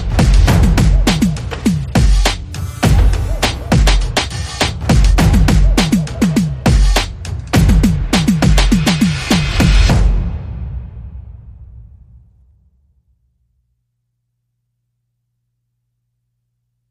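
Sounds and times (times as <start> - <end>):
drums: 0.0 - 12.1.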